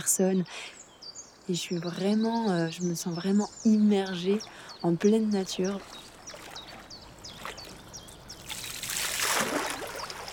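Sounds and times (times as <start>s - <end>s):
speech: 0.0s - 0.8s, 1.5s - 6.0s
water dripping from a kayak paddle: 5.4s - 10.3s.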